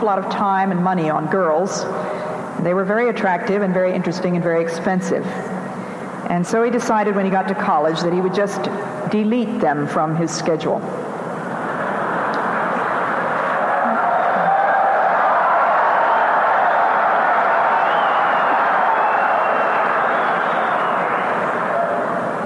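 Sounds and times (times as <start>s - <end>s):
speech: 0.0s - 5.5s, 6.2s - 11.1s
men cheering: 11.7s - 22.4s.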